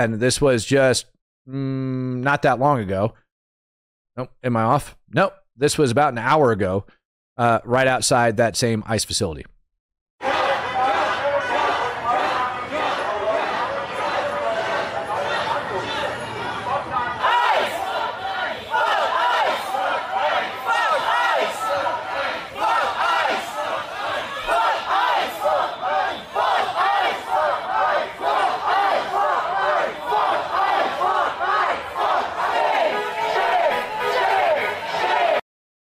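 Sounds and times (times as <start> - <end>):
speech: 0.0 - 3.2, 4.2 - 9.5
protest crowd chanting shame: 10.2 - 35.4.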